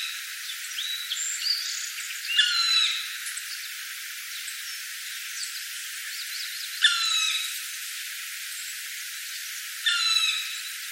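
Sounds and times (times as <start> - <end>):
faint hiss: 0.0 - 10.9
black woodpecker calls: 2.3 - 3.1, 6.8 - 7.5, 9.8 - 10.7.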